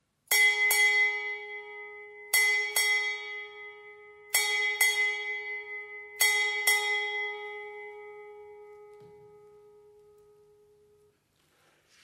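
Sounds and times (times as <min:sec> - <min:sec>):
ship's bell strikes: 0:00.3 - 0:09.9.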